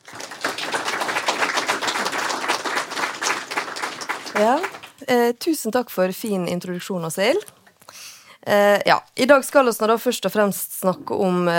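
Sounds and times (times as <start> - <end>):
audience applause: 0.0 - 5.0
speech: 4.4 - 7.6, 8.5 - 11.5.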